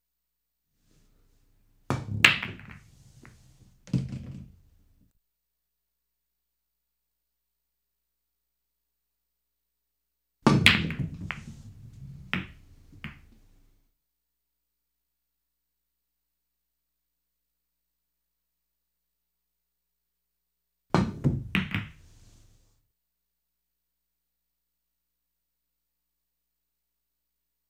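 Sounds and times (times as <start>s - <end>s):
billiards game sound: 1.9s - 4.8s, 10.5s - 13.5s, 21.0s - 22.2s.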